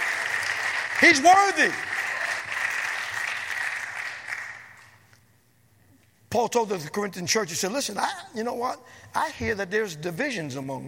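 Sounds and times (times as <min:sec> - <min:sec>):
audience clapping hands: 0:00.0 - 0:05.1
speech: 0:01.0 - 0:01.9, 0:06.3 - 0:10.8.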